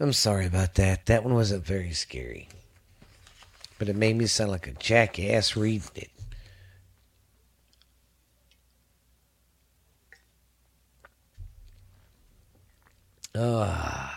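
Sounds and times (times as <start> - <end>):
speech: 0.0 - 2.6, 3.8 - 6.2, 13.4 - 14.1
person taking a drink: 10.1 - 10.4, 11.0 - 14.1.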